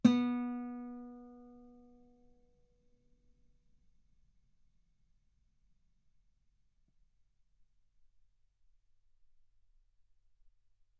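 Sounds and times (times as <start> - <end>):
guitar note B3: 0.0 - 1.5.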